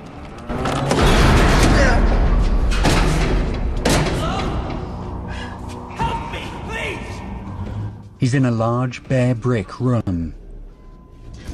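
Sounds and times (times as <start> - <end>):
hidden mechanism clanking as a door is opened: 0.2 - 5.1
speech: 8.2 - 10.4.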